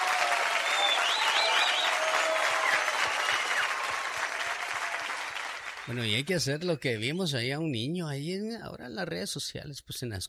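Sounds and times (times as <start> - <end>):
applause: 0.0 - 6.5
speech: 5.9 - 10.2.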